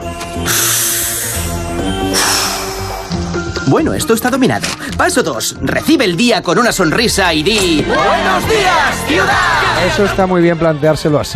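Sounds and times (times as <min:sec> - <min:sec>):
soft music: 0:00.0 - 0:11.3
deep breath drawn in and let out: 0:00.4 - 0:03.4
speech: 0:03.7 - 0:11.3.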